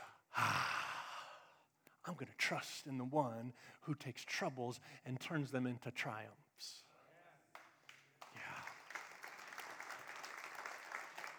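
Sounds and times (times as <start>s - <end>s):
speech: 2.1s - 6.9s
church congregation clapping together: 7.5s - 11.3s.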